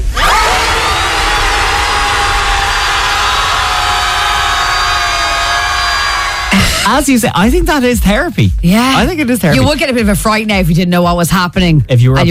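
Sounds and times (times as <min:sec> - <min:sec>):
group of people screaming at the sea: 0:00.0 - 0:06.9
constant rushing noise: 0:00.0 - 0:07.3
speech: 0:06.8 - 0:12.2.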